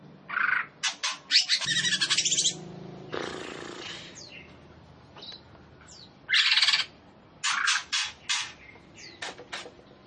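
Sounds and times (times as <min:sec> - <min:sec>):
leafbird rattling chatter and trills: 0:00.8 - 0:02.6, 0:06.3 - 0:09.8.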